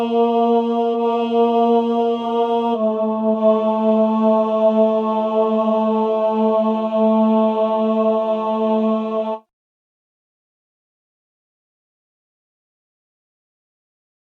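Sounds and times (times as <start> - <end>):
tenor singing: 0.0 - 9.4.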